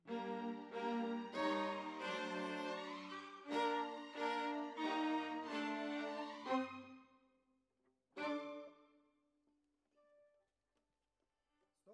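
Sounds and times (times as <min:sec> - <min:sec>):
violas: 0:00.1 - 0:07.0, 0:08.2 - 0:08.8.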